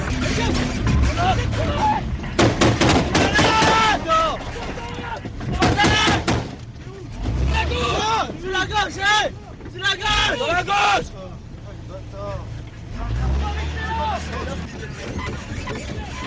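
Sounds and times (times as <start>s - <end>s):
men's voices: 0.0s - 16.2s
gunfire from men hidden in narrow alleys firing on a convoy: 2.4s - 3.8s, 5.6s - 6.6s.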